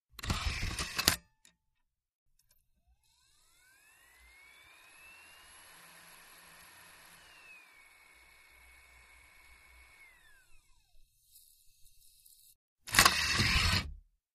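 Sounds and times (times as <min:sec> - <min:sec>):
computer CD-ROM tray opening and closing with heavy whir: 0:00.2 - 0:01.2, 0:12.9 - 0:13.9.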